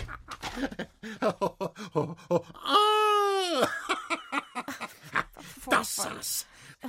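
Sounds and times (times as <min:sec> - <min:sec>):
laughter: 0:00.0 - 0:05.6
speech: 0:00.6 - 0:02.8
person screaming: 0:02.6 - 0:03.7.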